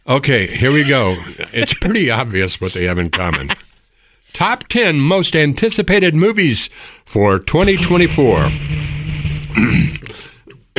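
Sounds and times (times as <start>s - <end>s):
speech: 0.1s - 3.7s, 4.3s - 8.9s, 9.6s - 10.7s
laughter: 0.5s - 2.0s, 2.9s - 3.7s
throat clearing: 9.6s - 10.7s.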